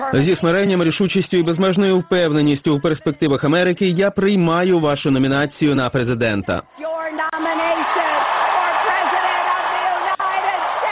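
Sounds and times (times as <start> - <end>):
speech: 0.1 - 7.2
voices cheering: 6.7 - 10.9
convention audience applause: 7.4 - 10.9.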